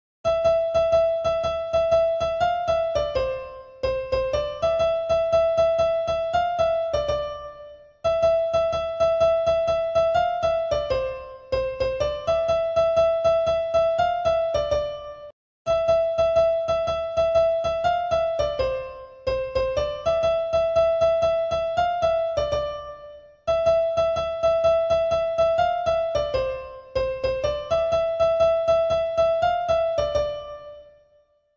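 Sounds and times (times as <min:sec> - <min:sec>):
easy piano background music: 0:00.2 - 0:31.2.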